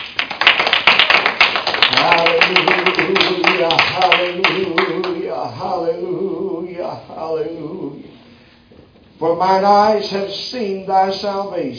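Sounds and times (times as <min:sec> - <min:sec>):
audience hand clapping: 0:00.0 - 0:05.2
speech: 0:02.0 - 0:08.1, 0:09.2 - 0:11.7.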